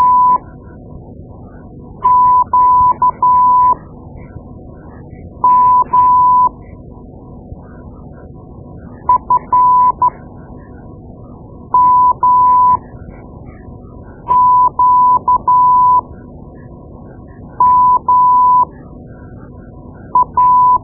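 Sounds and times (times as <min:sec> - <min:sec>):
morse code: 0:00.0 - 0:00.4, 0:02.0 - 0:03.8, 0:05.4 - 0:06.5, 0:09.1 - 0:10.1, 0:11.8 - 0:12.8, 0:14.3 - 0:16.0, 0:17.6 - 0:18.7, 0:20.2 - 0:20.8.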